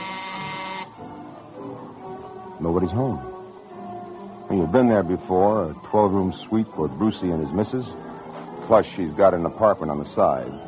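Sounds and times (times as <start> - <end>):
door buzzer being pressed: 0.0 - 1.0
speech: 2.6 - 3.3, 4.5 - 8.0, 8.7 - 10.6.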